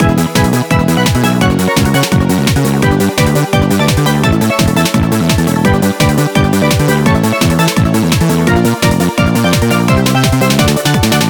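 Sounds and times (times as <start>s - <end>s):
background music: 0.0s - 11.2s.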